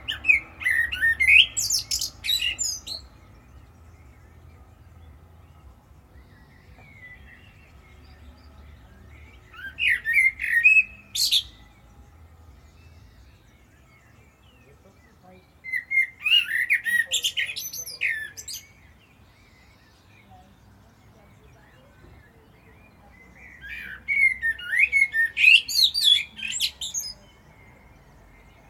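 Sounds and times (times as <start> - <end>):
common blackbird singing: 0.0 - 28.6.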